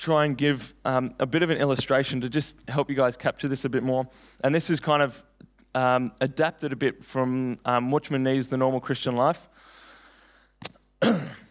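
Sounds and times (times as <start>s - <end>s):
speech: 0.0s - 9.7s, 10.6s - 11.4s
awkward sideways cough: 10.6s - 11.4s.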